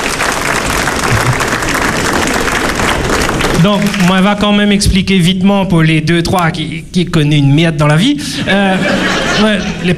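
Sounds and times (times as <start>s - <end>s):
audience applause: 0.0s - 4.2s
laughter: 1.1s - 1.5s, 8.3s - 9.9s
speech: 3.6s - 9.9s.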